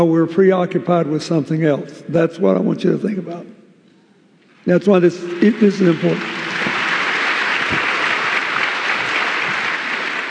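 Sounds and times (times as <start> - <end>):
speech: 0.0 - 3.6, 4.6 - 6.4
audience applause after a talk about a book: 5.3 - 10.2.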